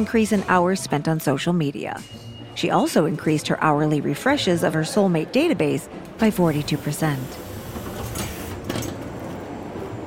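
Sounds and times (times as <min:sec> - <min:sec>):
speech: 0:00.0 - 0:07.5
subway train doors sliding closed: 0:05.9 - 0:10.0.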